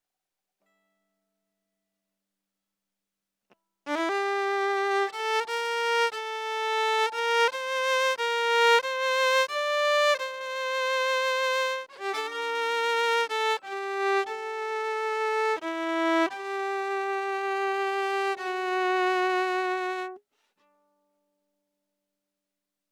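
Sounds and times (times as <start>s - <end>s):
violin: 3.9s - 20.2s.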